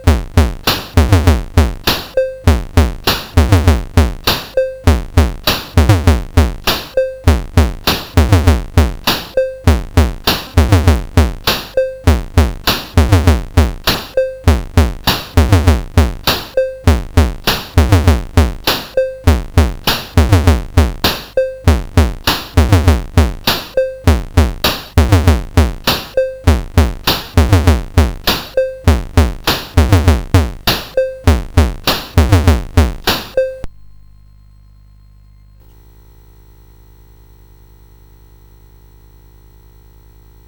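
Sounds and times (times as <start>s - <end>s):
drums: 0.0s - 34.1s.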